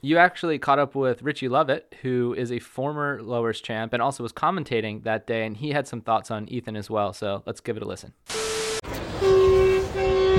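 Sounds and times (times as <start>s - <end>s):
speech: 0.0s - 9.0s
San Clemente surf liner passenger train horn blasts: 8.3s - 10.3s.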